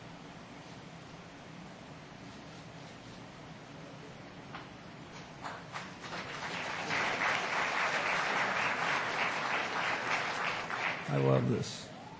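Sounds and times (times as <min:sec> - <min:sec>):
crowd applause: 0:05.4 - 0:11.6.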